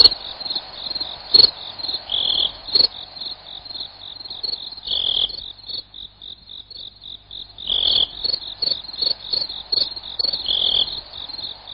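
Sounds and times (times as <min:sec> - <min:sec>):
cricket chirping slowed down: 0:00.0 - 0:11.7.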